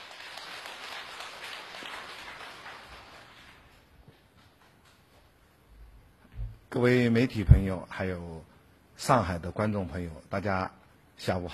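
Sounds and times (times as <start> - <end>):
audience applause: 0.0 - 3.9
speech: 6.7 - 11.5.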